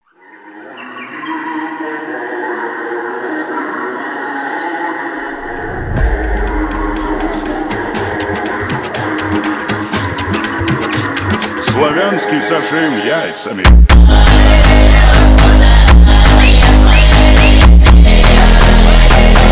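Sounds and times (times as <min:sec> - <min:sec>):
slavic funk music: 0:05.9 - 0:19.5.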